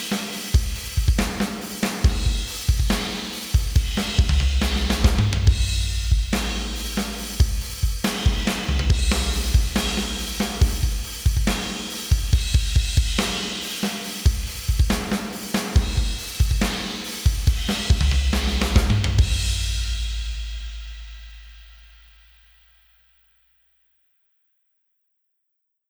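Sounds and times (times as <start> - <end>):
drums: 0.0 - 22.3.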